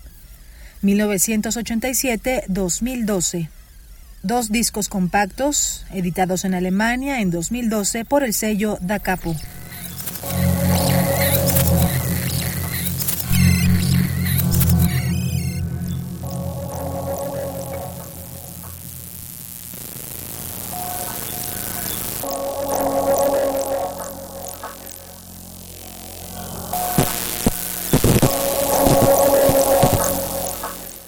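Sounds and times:
speech: 0:00.8 - 0:03.6, 0:04.2 - 0:09.6
electroacoustic music piece: 0:09.3 - 0:31.0.

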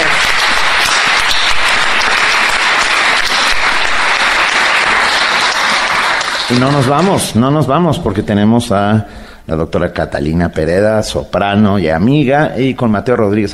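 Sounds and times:
audience applause: 0:00.0 - 0:07.2
speech: 0:06.5 - 0:13.5.

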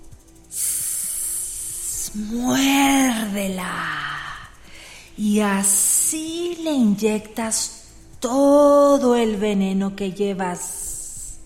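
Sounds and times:
voice imitating snake hissing: 0:00.3 - 0:06.5, 0:10.6 - 0:11.4
speech: 0:02.1 - 0:04.0, 0:05.2 - 0:10.8.

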